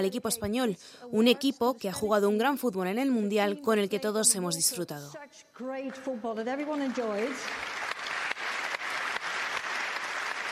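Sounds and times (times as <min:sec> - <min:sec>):
speech: 0:00.0 - 0:07.8
audience applause: 0:06.9 - 0:10.4.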